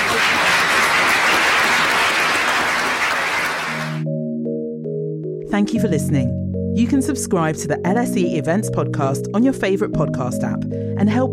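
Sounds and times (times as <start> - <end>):
audience applause: 0.0 - 4.0
sustained musical chord: 3.8 - 9.2
speech: 5.6 - 11.3.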